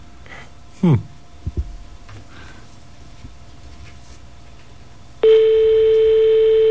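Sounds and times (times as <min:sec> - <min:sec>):
loud steady buzzing telephone ring tone: 0:05.2 - 0:06.6
telephone line noise: 0:05.2 - 0:06.6.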